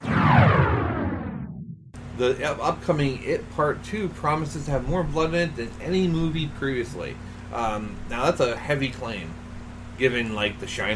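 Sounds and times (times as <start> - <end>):
whoosh transition sound effect: 0.0 - 1.9
speech: 2.2 - 9.4, 10.0 - 10.9.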